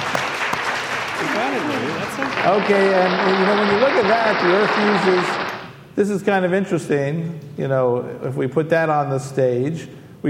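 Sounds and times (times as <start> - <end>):
audience applause: 0.0 - 5.7
speech: 1.4 - 5.4, 6.0 - 10.2.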